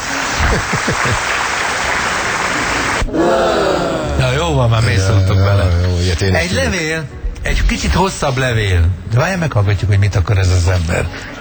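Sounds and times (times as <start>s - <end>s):
applause: 0.0s - 3.1s
laughter: 0.0s - 6.7s, 10.7s - 11.4s
speech: 0.5s - 1.5s, 3.1s - 3.9s, 4.5s - 11.4s.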